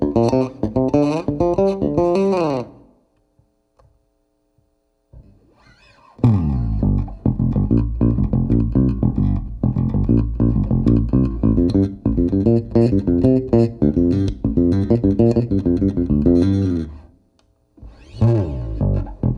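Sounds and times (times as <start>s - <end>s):
Warwick bass: 0.0s - 2.7s, 6.2s - 17.1s, 17.8s - 19.3s.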